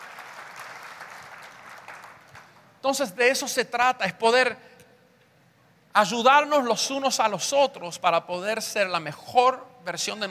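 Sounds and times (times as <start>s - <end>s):
audience applause: 0.0s - 2.6s
speech: 2.8s - 4.7s, 6.0s - 10.2s.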